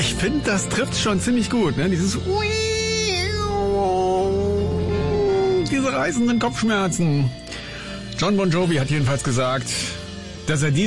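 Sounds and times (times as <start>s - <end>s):
steady low backing music: 0.0s - 10.8s
speech: 0.1s - 3.2s, 5.8s - 7.4s, 8.2s - 10.8s
wailing electric guitar holding a sustained bending note: 3.7s - 5.8s.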